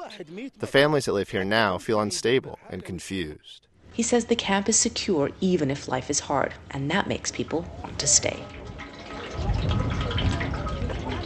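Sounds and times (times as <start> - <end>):
speech: 0.1 - 8.6
water from a dripping tap running into a bucket in a camp: 7.3 - 11.2.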